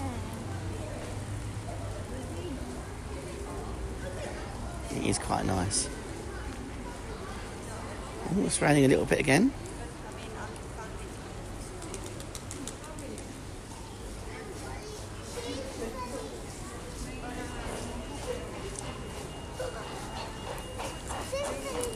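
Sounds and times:
passing traffic: 0.0 - 21.9
steady street noise: 0.0 - 21.9
voices murmuring: 0.0 - 21.9
speech: 5.0 - 6.0, 8.3 - 9.7
audible pedestrian crossing signal beeping: 17.2 - 21.9.

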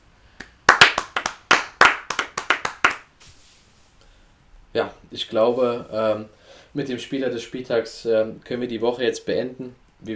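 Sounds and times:
applause: 0.4 - 3.1
speech: 4.7 - 10.1.

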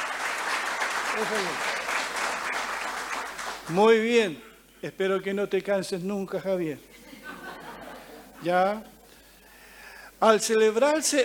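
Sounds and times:
applause: 0.0 - 3.8
speech: 1.2 - 1.7, 3.7 - 6.9, 8.4 - 8.9, 10.2 - 11.2
laughter: 6.9 - 9.2.

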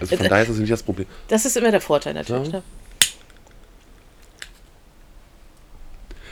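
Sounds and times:
speech: 0.0 - 2.9
faint hiss: 0.0 - 6.2
lighter being flicked to light candle: 3.0 - 3.4.

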